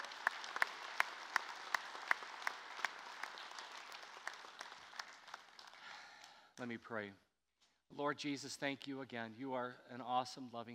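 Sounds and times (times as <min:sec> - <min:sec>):
audience applause: 0:00.0 - 0:06.3
speech: 0:06.6 - 0:07.3, 0:07.9 - 0:10.7.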